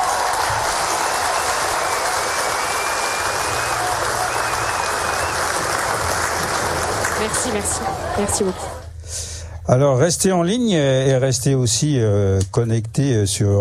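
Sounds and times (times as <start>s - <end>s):
whistles and cheers: 0.0s - 7.2s
audience applause for band: 0.0s - 8.8s
speech: 7.3s - 13.5s.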